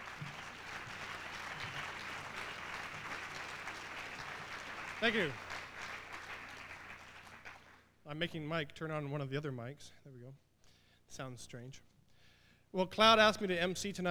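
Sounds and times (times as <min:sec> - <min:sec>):
audience applause: 0:00.0 - 0:07.8
speech: 0:05.0 - 0:05.6, 0:08.1 - 0:10.4, 0:11.1 - 0:11.9, 0:12.7 - 0:14.0.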